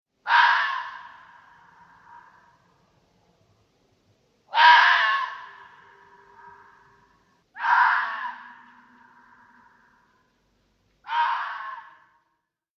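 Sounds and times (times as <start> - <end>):
fox screaming: 0.2 - 2.6, 4.5 - 10.1, 11.0 - 12.2.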